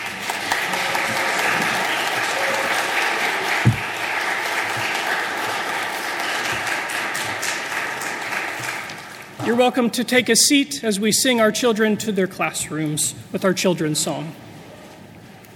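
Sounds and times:
audience applause: 0.0s - 9.4s
speech: 9.5s - 14.6s.

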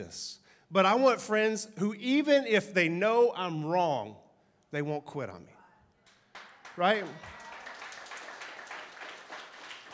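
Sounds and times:
speech: 0.0s - 5.5s, 6.8s - 7.4s
audience clapping during a sermon: 6.0s - 9.9s.

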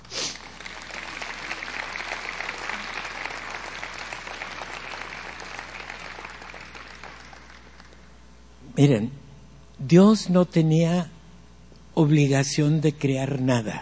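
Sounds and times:
audience applauding: 0.2s - 8.2s
speech: 8.8s - 9.2s, 9.8s - 11.2s, 12.0s - 13.8s.

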